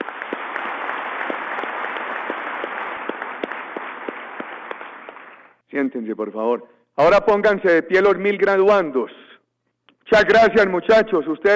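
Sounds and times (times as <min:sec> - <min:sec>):
audience applause: 0:00.0 - 0:05.6
speech: 0:05.7 - 0:09.2, 0:10.1 - 0:11.5.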